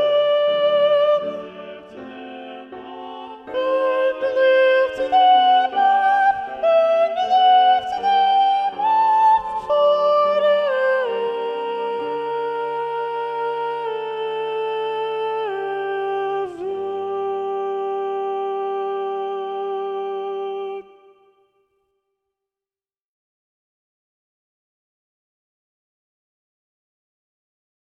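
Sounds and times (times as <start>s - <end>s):
soprano voice singing: 0.0s - 21.4s.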